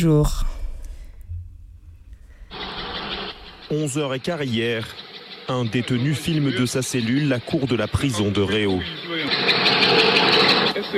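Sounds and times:
speech: 0.0 - 0.5, 3.7 - 9.6
helicopter rotor blades: 2.5 - 10.9.

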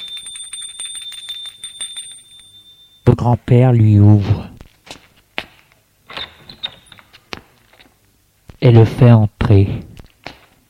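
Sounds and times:
doorbell ringing: 0.0 - 3.1
speech: 3.1 - 4.5, 8.6 - 9.9.

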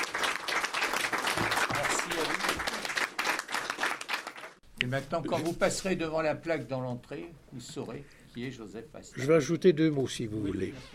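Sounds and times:
applause: 0.0 - 4.6
speech: 4.8 - 10.9.

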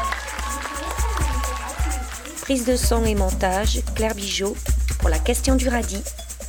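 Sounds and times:
audience applause: 0.0 - 2.6
speech: 2.5 - 4.7, 5.3 - 6.2.

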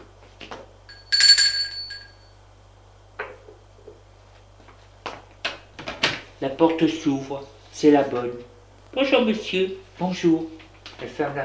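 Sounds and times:
doorbell ringing at apartment door: 0.9 - 2.3
low hum: 0.9 - 2.3
speech: 6.4 - 11.4.

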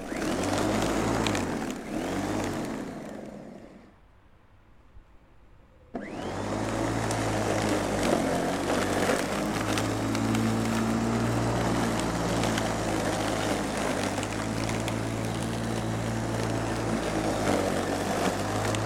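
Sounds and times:
old electric lawnmower cutting grass: 0.0 - 4.0, 5.9 - 18.8.

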